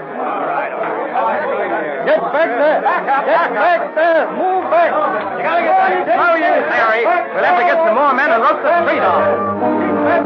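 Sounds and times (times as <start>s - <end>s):
crowd milling outside police station: 0.0s - 10.2s
speech: 2.1s - 10.2s.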